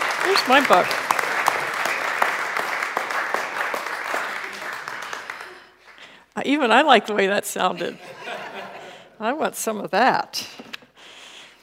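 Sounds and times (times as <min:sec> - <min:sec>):
audience applauding an author welcomed on stage: 0:00.0 - 0:06.2
speech: 0:00.3 - 0:01.1, 0:06.4 - 0:08.2, 0:09.2 - 0:10.5
laughter: 0:07.8 - 0:09.1.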